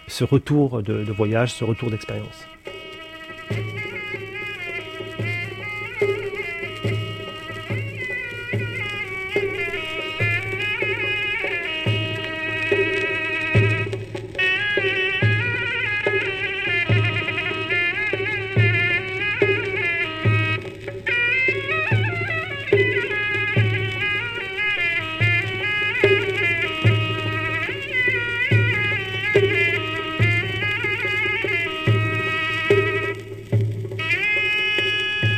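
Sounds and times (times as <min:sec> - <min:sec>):
zurna double-reed wind instrument solo: 0:00.0 - 0:35.3
speech: 0:00.1 - 0:02.8
low thumping beat: 0:00.1 - 0:35.3.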